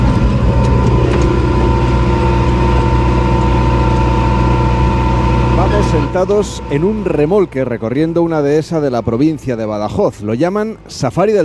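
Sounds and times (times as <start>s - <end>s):
tractor engine running: 0.0s - 11.4s
speech: 6.0s - 11.4s.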